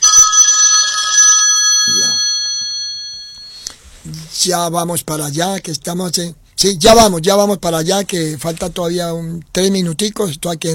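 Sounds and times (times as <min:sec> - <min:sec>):
telephone bell ringing: 0:00.0 - 0:03.6
speech: 0:04.4 - 0:10.7.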